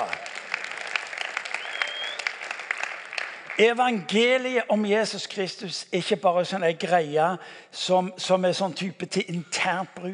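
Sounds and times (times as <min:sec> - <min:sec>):
audience applause: 0:00.0 - 0:03.7
speech: 0:03.6 - 0:10.1.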